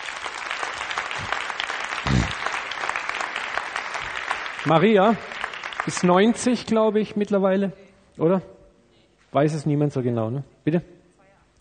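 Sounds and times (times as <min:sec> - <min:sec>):
audience applause: 0:00.0 - 0:06.3
speech: 0:04.6 - 0:08.6, 0:09.3 - 0:11.0.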